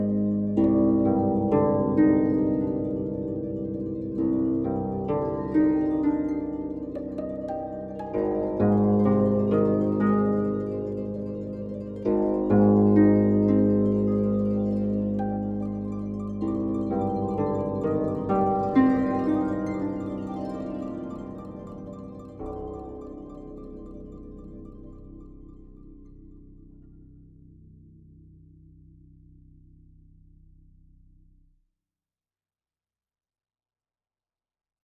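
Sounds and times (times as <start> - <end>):
arpeggio: 0.0 - 27.1.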